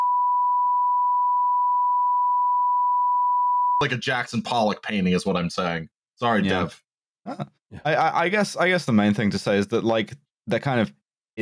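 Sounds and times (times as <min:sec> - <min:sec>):
censor bleep tone: 0:00.0 - 0:03.8
speech: 0:03.8 - 0:11.3.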